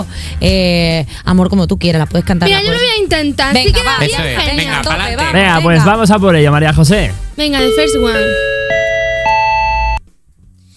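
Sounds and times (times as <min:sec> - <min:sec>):
speech: 0:00.0 - 0:08.5
airport announcement two-note electronic chime: 0:07.6 - 0:10.0.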